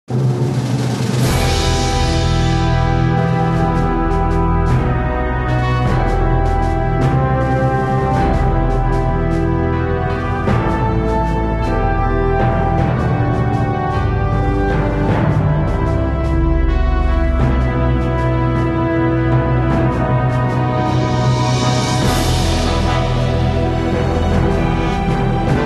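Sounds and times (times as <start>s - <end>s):
heroic victory music: 0.1s - 25.6s.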